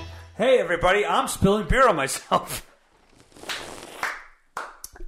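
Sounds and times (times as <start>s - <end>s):
speech: 0.4s - 2.7s
clapping: 3.4s - 5.0s.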